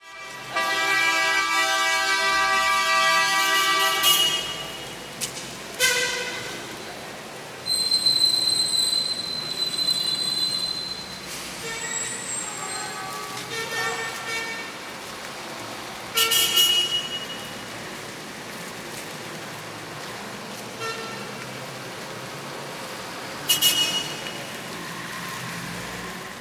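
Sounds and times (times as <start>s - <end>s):
Hong Kong traffic: 0.0s - 26.3s.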